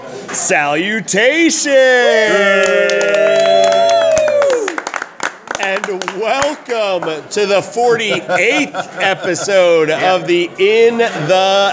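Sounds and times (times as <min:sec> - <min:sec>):
speech: 0:00.4 - 0:03.9, 0:05.8 - 0:11.7
audience cheering and whooping: 0:02.1 - 0:05.0
audience applause: 0:02.4 - 0:07.3
laughter: 0:07.5 - 0:11.7.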